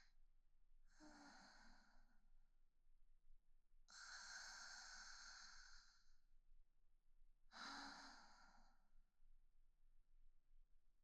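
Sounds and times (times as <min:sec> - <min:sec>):
woman breathing calmly in sleep beside her boyfriend: 0:00.9 - 0:02.1, 0:03.9 - 0:06.2, 0:07.5 - 0:08.8.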